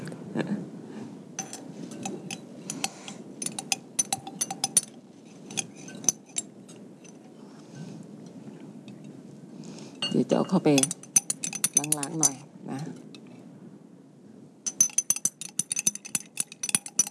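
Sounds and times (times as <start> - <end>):
speech: 0.4 - 0.7, 10.2 - 11.0, 11.9 - 13.0
spoon clinking against container while mixing a cosmetic product: 1.4 - 7.2, 10.0 - 12.4, 14.7 - 17.1.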